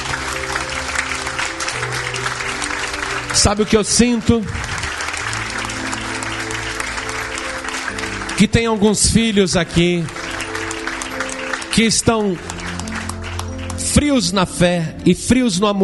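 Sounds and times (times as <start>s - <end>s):
audience applauding: 0.0s - 14.5s
speech: 3.4s - 4.7s, 8.4s - 10.3s, 11.8s - 12.6s, 14.0s - 15.8s.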